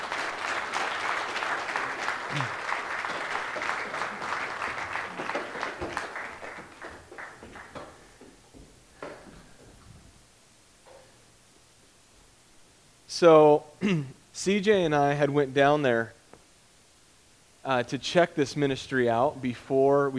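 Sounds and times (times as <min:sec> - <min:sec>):
audience applause: 0:00.0 - 0:08.3
speech: 0:02.3 - 0:02.6, 0:13.2 - 0:16.2, 0:17.7 - 0:20.1.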